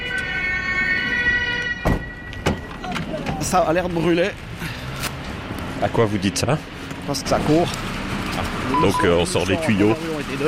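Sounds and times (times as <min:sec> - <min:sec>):
police siren wailing: 0:00.0 - 0:02.3
speech: 0:03.4 - 0:04.8, 0:05.8 - 0:10.4.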